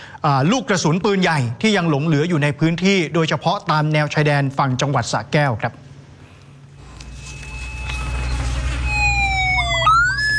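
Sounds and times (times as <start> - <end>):
speech: 0.2 - 5.9
mine detector two-tone electronic beeping: 6.8 - 10.3.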